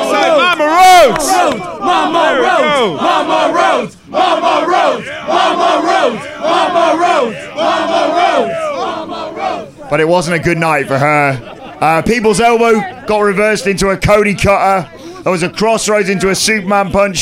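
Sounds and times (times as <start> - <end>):
wrestling arena crowd cheering and chanting for a wrestler's mother: 0.0 - 17.2
speech: 1.0 - 8.5, 9.9 - 17.2
laughter: 9.7 - 16.9.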